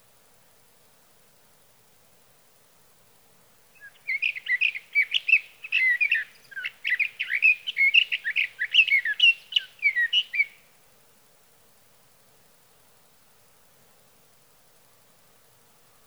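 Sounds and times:
sage thrasher song: 0:03.8 - 0:10.6.

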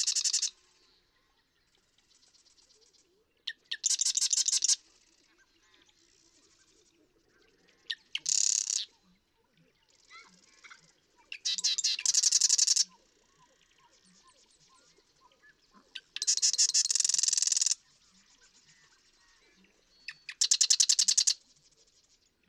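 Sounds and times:
Marsh Wren rattling song: 0:00.0 - 0:00.5, 0:03.6 - 0:04.8, 0:07.9 - 0:09.0, 0:10.0 - 0:13.2, 0:15.9 - 0:17.8, 0:20.1 - 0:22.2.

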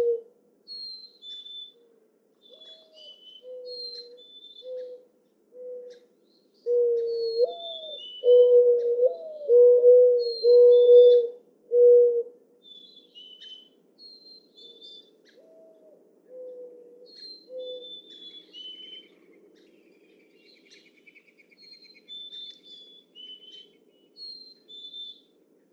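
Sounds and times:
mourning dove cooing: 0:00.0 - 0:00.3, 0:06.7 - 0:12.4, 0:15.4 - 0:17.8.

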